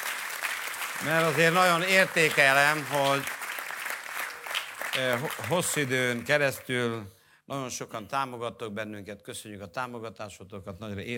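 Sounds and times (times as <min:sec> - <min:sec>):
audience applause: 0:00.0 - 0:06.7
speech: 0:01.0 - 0:03.4, 0:05.0 - 0:11.1.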